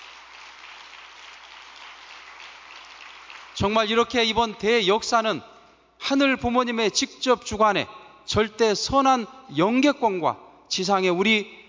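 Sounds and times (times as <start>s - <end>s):
audience applause: 0.0s - 3.6s
speech: 3.6s - 5.5s, 6.1s - 11.6s.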